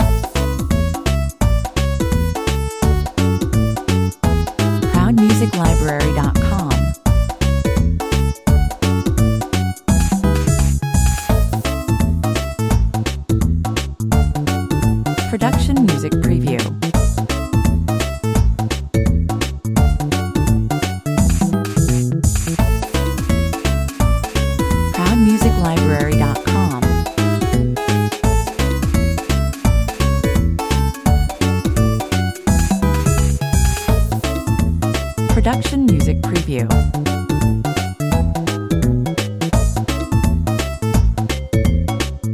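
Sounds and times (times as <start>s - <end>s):
8-bit style flash arcade video game music at 85 bpm: 0.0s - 42.3s.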